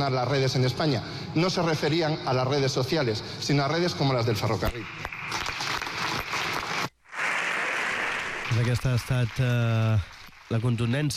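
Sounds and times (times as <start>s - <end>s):
speech: 0.0s - 5.2s, 8.5s - 11.1s
Partit Popular bench applauding in parliament: 4.7s - 11.1s.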